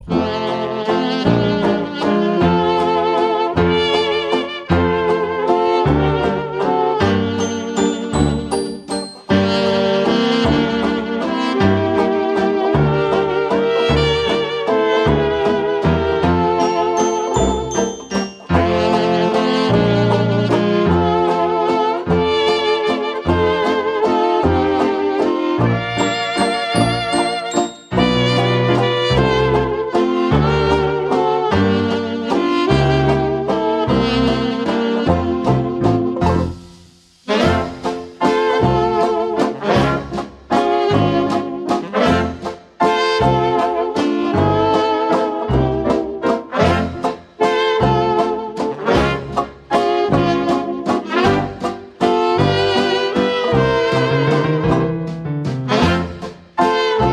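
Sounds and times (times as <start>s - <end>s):
jazz orchestra playing a waltz medley: 0.0s - 57.1s.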